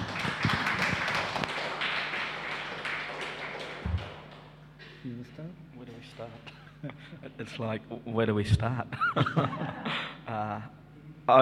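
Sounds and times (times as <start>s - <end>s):
audience applause: 0.0s - 4.6s
speech: 6.2s - 11.4s
laughter: 8.9s - 10.7s.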